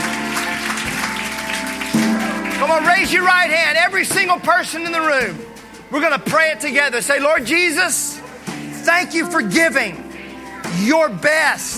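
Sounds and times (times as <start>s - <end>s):
audience clapping: 0.0s - 5.0s
scattered cheering: 0.0s - 5.2s
speech: 2.8s - 10.0s, 10.7s - 11.7s.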